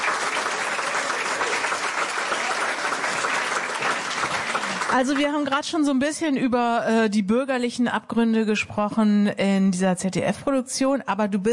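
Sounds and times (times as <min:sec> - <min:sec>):
studio audience applause: 0:00.0 - 0:05.6
speech: 0:04.9 - 0:11.5.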